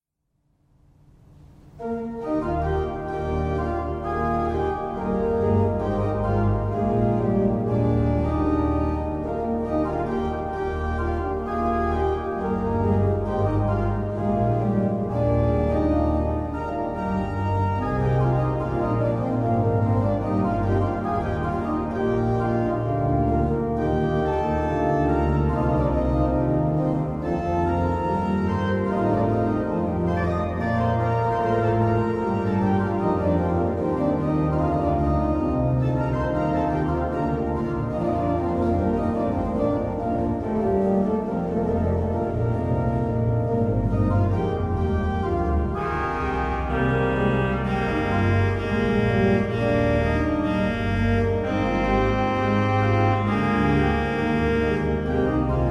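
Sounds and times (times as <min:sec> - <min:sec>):
organ: 0:01.2 - 0:55.6.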